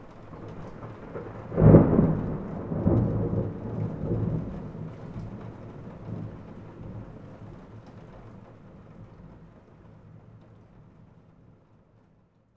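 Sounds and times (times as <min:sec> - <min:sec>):
thunder: 0:00.3 - 0:08.4.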